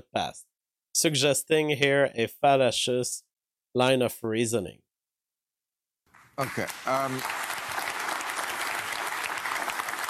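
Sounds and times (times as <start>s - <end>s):
speech: 0.2s - 4.8s, 6.4s - 7.5s
audience applauding: 6.2s - 10.0s.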